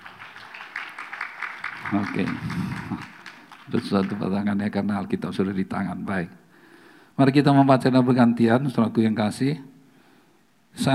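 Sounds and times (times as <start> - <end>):
audience applause: 0.0 - 4.2
speech: 1.9 - 6.4, 7.2 - 9.7, 10.8 - 10.9.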